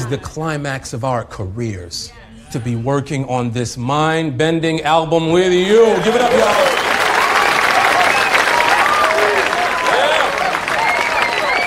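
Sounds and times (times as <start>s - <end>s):
speech: 0.1s - 6.8s
audience clapping: 5.8s - 11.6s.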